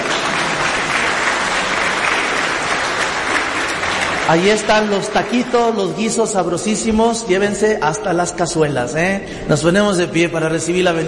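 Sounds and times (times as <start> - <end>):
audience applause: 0.0 - 6.0
speech: 4.3 - 11.0.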